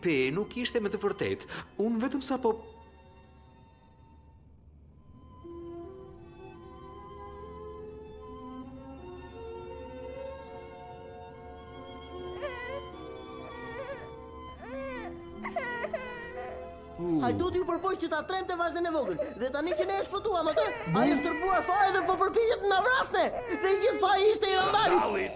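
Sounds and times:
speech: 0.0s - 2.8s, 17.3s - 25.3s
small child crying in an animated film: 12.4s - 16.6s, 18.9s - 25.3s.

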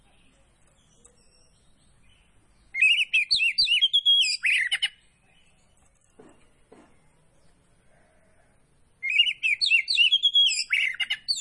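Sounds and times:
magpie-robin song: 2.8s - 5.0s, 9.0s - 11.3s.

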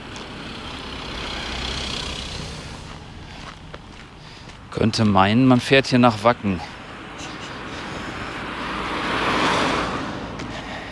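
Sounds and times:
cars driving past: 0.0s - 10.9s
speech: 4.8s - 6.7s.

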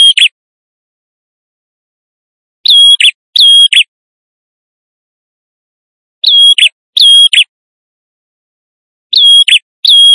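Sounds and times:
male prinia in vigorous song used as a lure: 2.6s - 3.9s, 6.2s - 7.5s, 9.1s - 10.1s.

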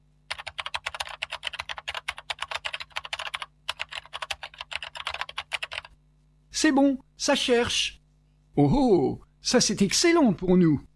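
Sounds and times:
computer keyboard typing a search: 0.3s - 5.9s
speech: 6.6s - 8.0s, 8.6s - 10.9s.

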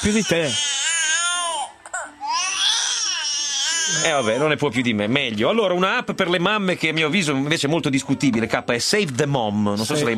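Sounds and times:
speech: 0.0s - 0.8s, 3.9s - 10.1s
baby wailing loudly: 0.0s - 4.6s.

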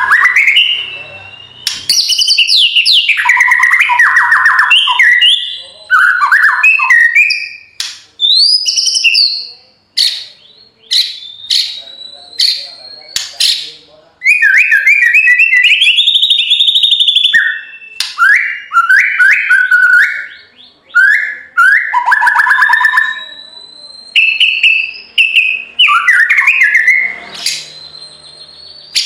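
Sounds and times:
white-rumped shama singing: 0.0s - 29.0s.

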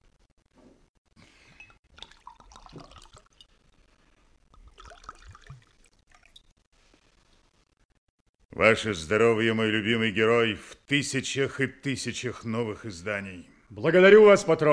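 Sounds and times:
ale glugging as it is poured into mugs: 1.3s - 6.5s
small clinks of mugs: 1.4s - 3.3s
speech: 8.6s - 14.7s.

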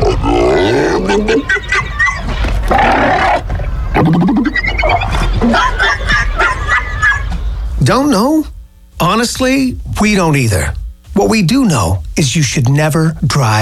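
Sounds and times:
seals vocalizing: 0.0s - 6.1s
laughter: 0.8s - 2.6s, 4.3s - 7.4s
speech: 7.9s - 8.3s, 9.2s - 13.5s.

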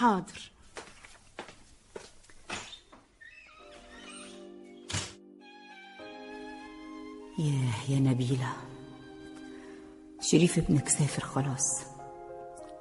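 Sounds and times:
speech: 0.0s - 0.5s, 7.4s - 8.8s, 10.2s - 11.9s
soft footsteps: 0.3s - 3.2s
door slamming: 3.7s - 5.2s.

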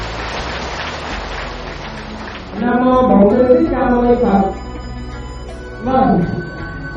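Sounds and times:
long round of applause: 0.0s - 2.6s, 4.5s - 5.5s
speech: 2.6s - 4.6s, 5.8s - 6.6s.

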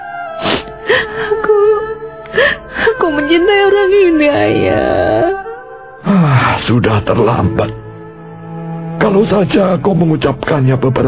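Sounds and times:
woman crying: 0.4s - 5.4s
speech: 3.1s - 5.4s, 6.2s - 7.8s, 9.0s - 11.0s.

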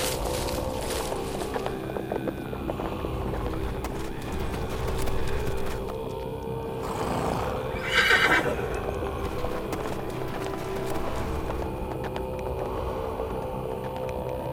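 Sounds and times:
horses galloping: 0.2s - 14.4s
horses neighing shrilly: 6.8s - 10.4s.

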